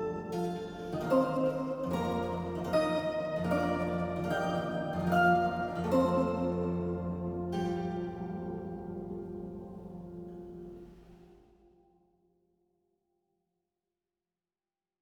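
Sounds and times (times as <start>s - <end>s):
lute playing: 0.0s - 11.3s.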